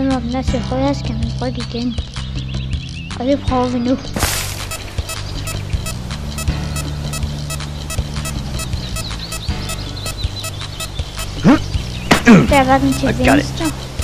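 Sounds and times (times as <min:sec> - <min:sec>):
speech: 0:00.3 - 0:02.2, 0:03.2 - 0:04.4, 0:12.3 - 0:13.9
electronic game beep tones: 0:04.3 - 0:11.6, 0:12.8 - 0:14.0.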